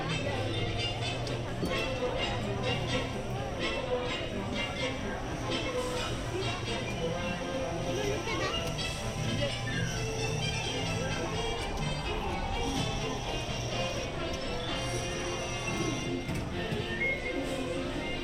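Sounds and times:
ambience of the Mad Tea Party and Alice in Wonderland attractions: 0:00.0 - 0:18.2.

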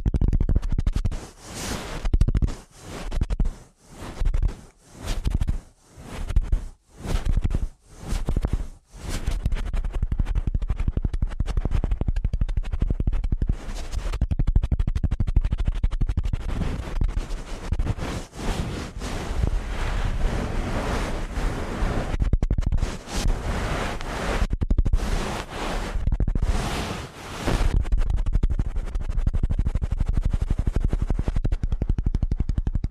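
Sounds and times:
fast scratchy ear cleaning strokes: 0:00.1 - 0:32.8.

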